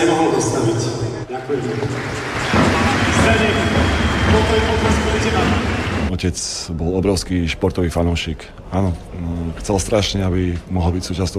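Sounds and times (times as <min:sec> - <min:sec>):
speech: 0:00.0 - 0:03.7, 0:06.2 - 0:11.3
audience applause in arena: 0:01.4 - 0:06.1.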